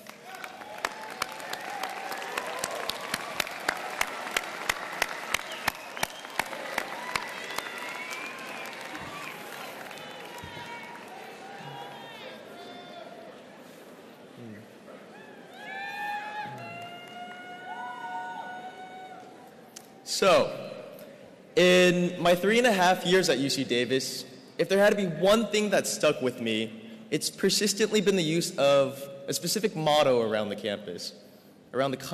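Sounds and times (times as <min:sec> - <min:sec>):
audience clapping: 0:00.0 - 0:12.4, 0:16.4 - 0:18.0
cheers and whoops: 0:00.2 - 0:13.3, 0:15.1 - 0:19.5
speech: 0:20.2 - 0:20.6, 0:21.6 - 0:32.1.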